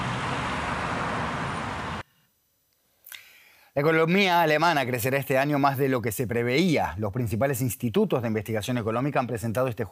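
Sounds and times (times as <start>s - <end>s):
busy city street traffic: 0.0s - 2.0s
speech: 3.8s - 9.9s.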